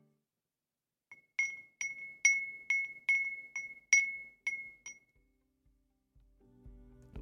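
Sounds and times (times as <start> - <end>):
handmade Edo glass wind chime ringing: 1.2 - 5.1.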